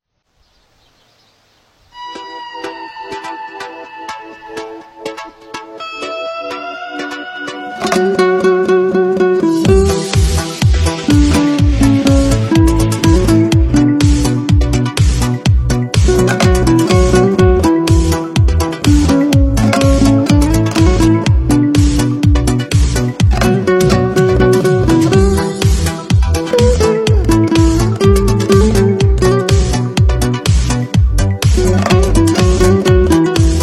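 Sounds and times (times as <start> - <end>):
dombyra karaoke backing music: 2.0 - 33.6.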